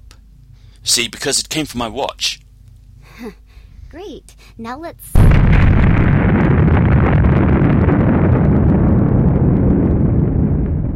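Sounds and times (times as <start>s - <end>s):
speech: 0.8s - 2.4s, 3.2s - 6.5s
missile explosion: 5.2s - 10.9s.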